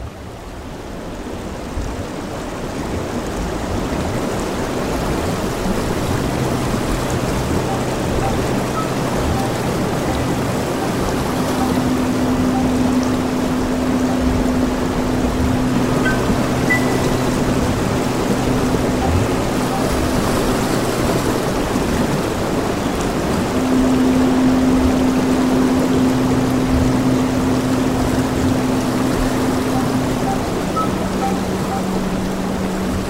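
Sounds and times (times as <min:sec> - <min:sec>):
river flowing: 0:00.0 - 0:33.0
faint low drone: 0:05.4 - 0:21.8, 0:23.2 - 0:33.0.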